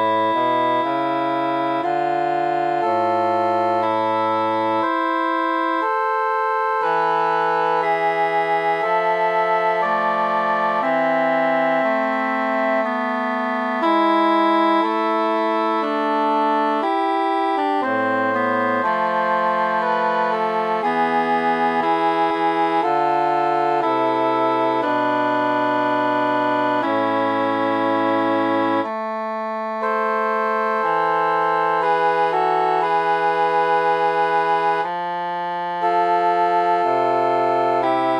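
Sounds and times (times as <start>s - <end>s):
instrument with tenor mute: 0.0s - 38.1s.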